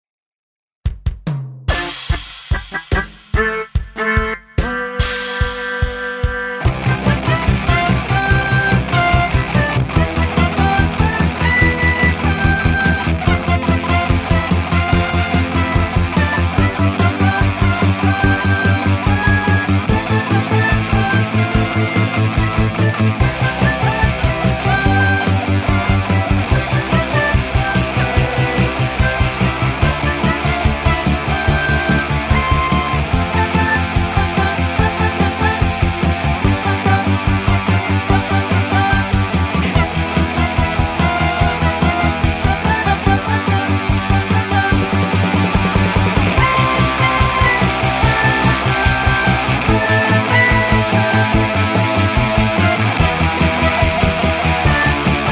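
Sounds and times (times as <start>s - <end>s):
rock background music: 1.7s - 55.3s
warp effect: 1.7s - 55.3s.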